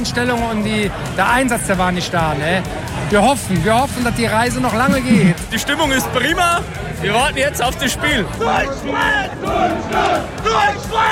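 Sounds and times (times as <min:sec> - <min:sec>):
speech: 0:00.0 - 0:11.1
laughter: 0:04.5 - 0:05.6
large crowd of football fans chanting: 0:08.0 - 0:11.1.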